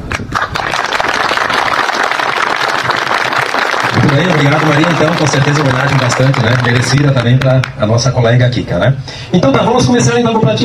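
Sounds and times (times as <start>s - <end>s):
applause: 0.0s - 7.8s
speech: 4.1s - 10.6s.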